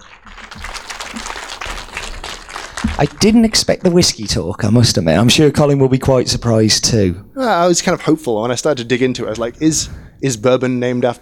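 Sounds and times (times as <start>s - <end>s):
audience applause: 0.0s - 3.1s, 7.4s - 7.9s
speech: 3.0s - 11.2s.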